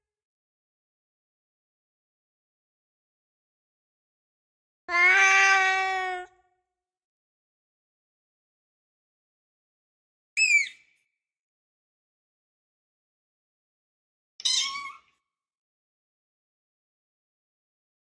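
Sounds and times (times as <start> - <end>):
cat meowing: 4.9 - 6.4, 14.4 - 15.0.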